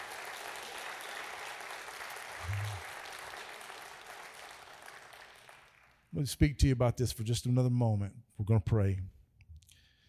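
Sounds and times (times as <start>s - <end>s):
audience clapping: 0.0s - 6.2s
speech: 6.2s - 9.1s.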